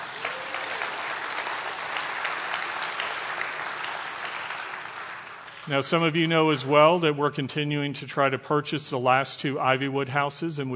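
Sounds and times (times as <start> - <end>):
audience applause: 0.0 - 5.9
speech: 5.7 - 10.7.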